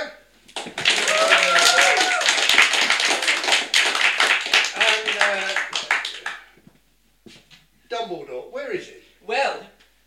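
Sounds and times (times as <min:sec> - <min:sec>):
audience applause: 0:00.6 - 0:06.4.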